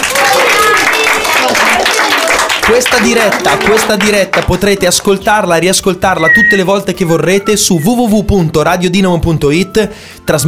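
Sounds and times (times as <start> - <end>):
audience applause: 0.0 - 5.0
speech: 2.7 - 10.4.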